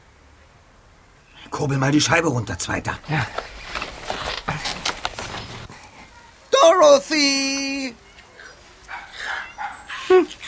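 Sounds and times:
speech: 1.4s - 3.5s, 7.1s - 8.0s
small chihuahua dog barking: 8.9s - 10.1s.

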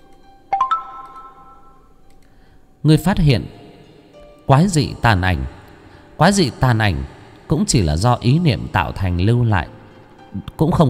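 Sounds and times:
three-note system notification chime: 0.6s - 1.8s
speech: 2.8s - 3.6s, 4.5s - 5.6s, 6.2s - 10.8s.

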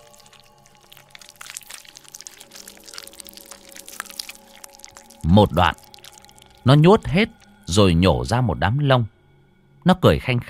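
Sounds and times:
wet chewing and squelching of mice: 0.0s - 7.9s
speech: 5.3s - 5.8s, 6.6s - 9.2s, 9.8s - 10.4s.

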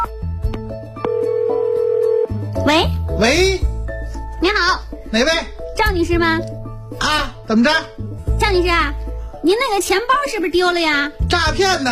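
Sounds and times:
telephone ringing tone during a call: 1.0s - 2.4s
speech: 2.7s - 3.7s, 4.4s - 11.8s.

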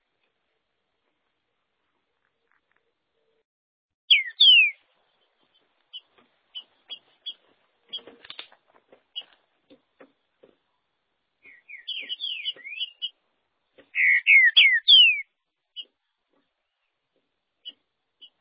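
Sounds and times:
green-winged saltator whistled song: 4.1s - 4.8s, 14.0s - 15.3s.

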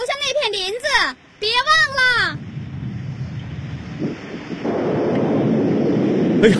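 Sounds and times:
mountain flood water rushing down a slope: 0.2s - 6.5s.

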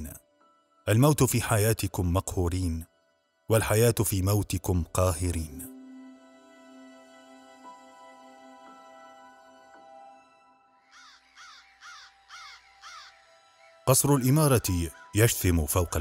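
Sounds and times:
speech: 0.9s - 2.9s, 3.5s - 5.7s, 13.9s - 15.9s
crow cawing: 10.8s - 13.8s, 14.9s - 15.2s.

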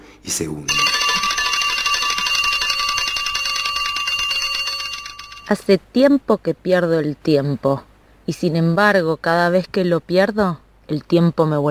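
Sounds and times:
speech: 0.2s - 1.0s, 5.5s - 11.6s
mechanical alarm clock ringing: 0.7s - 5.6s.

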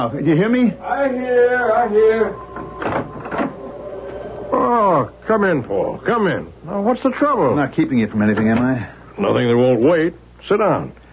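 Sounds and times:
speech: 0.0s - 3.0s, 4.5s - 11.0s
door being opened: 1.6s - 5.6s.

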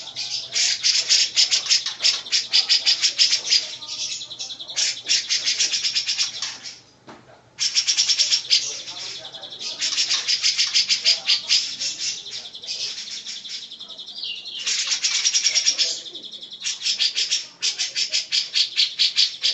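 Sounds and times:
female grey-cheeked bulbul chattering: 0.0s - 19.5s.

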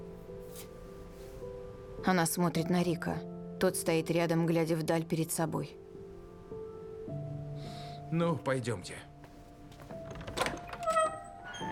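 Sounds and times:
speech: 2.0s - 5.8s, 8.1s - 9.1s
door opening: 9.8s - 11.7s.

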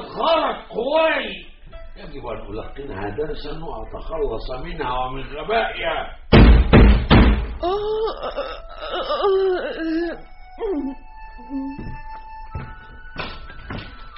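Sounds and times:
speech: 0.2s - 6.2s, 7.6s - 12.0s
heavy knocking on a door: 6.3s - 7.6s.

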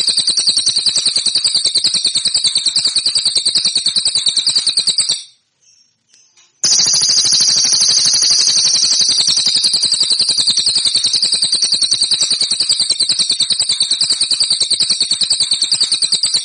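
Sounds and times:
cililin song metallic trill: 0.0s - 16.4s.

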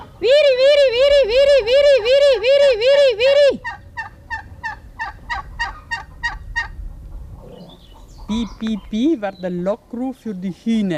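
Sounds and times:
turkeys gobbling: 0.0s - 9.1s
low farmyard rumble: 0.0s - 10.9s
speech: 8.6s - 10.9s.

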